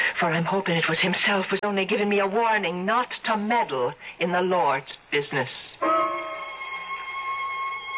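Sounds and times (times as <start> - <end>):
speech: 0.2 - 5.9
far-off bell tinkling: 5.8 - 7.8.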